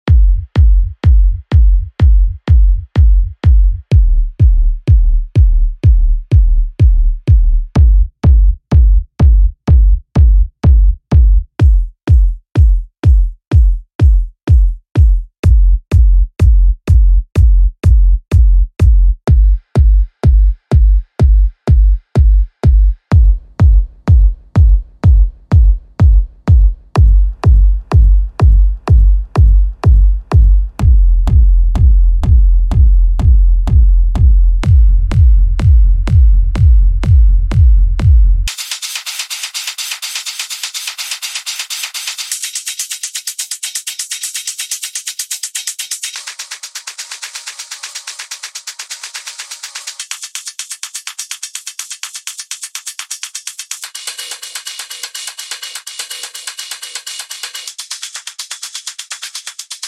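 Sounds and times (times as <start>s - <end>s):
tech kick drums: 0.0s - 38.6s.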